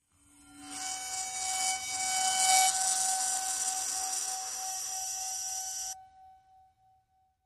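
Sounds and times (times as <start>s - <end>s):
bowed singing bowl: 0.4s - 6.0s.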